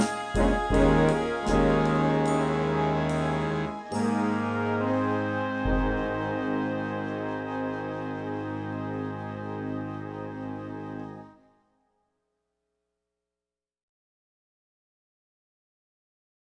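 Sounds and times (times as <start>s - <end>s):
band arrangement: 0.0s - 11.2s.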